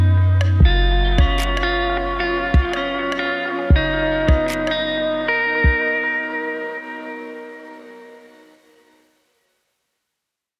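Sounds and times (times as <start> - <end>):
emotional indie music: 0.0 - 8.6.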